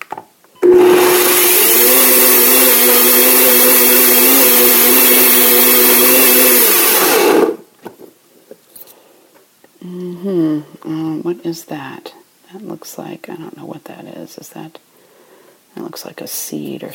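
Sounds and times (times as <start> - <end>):
blender pulsing: 0.6 - 7.7
speech: 11.3 - 14.9, 15.7 - 16.9.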